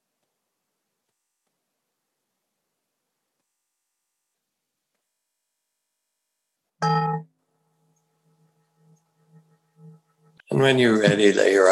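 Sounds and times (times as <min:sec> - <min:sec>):
meditation bell over Zoom: 0:06.8 - 0:10.5
speech: 0:10.5 - 0:11.6.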